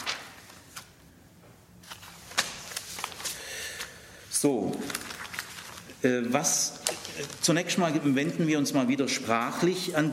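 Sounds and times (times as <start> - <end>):
book pages flipping: 0.0 - 1.0, 1.8 - 6.0, 6.7 - 7.5
speech: 4.4 - 5.0, 6.0 - 10.1.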